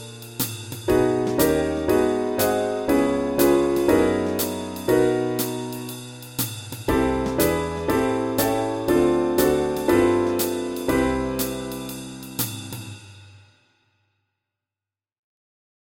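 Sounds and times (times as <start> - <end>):
walking bass backing track: 0.9 - 12.9.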